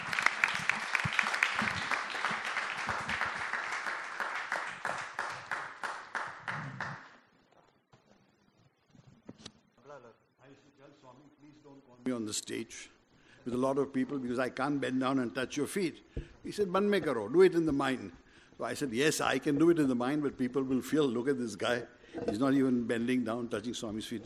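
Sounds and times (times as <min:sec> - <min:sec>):
audience applause welcoming a speaker on stage: 0:00.0 - 0:07.2
speech: 0:12.2 - 0:24.2.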